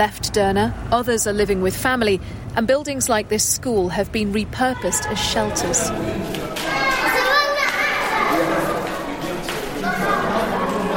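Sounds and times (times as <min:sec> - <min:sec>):
speech: 0:00.0 - 0:06.8
children playing in echoey school corridor: 0:04.4 - 0:10.9.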